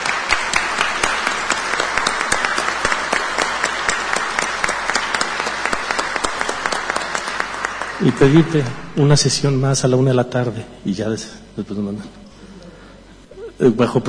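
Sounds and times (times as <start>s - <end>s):
sustained applause from a council gathering: 0.0s - 9.2s
speech: 8.0s - 12.2s, 13.6s - 14.0s.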